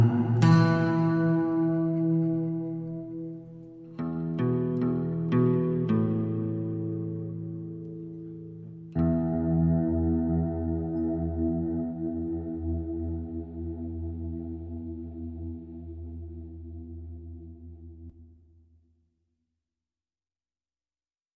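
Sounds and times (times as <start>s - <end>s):
guitar playing in E minor: 0.0s - 18.1s.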